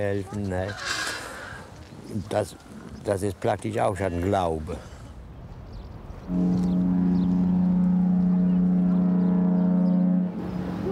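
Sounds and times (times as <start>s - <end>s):
speech: 0.0s - 1.1s, 2.1s - 4.9s, 6.3s - 6.6s
boat horn: 6.3s - 10.8s.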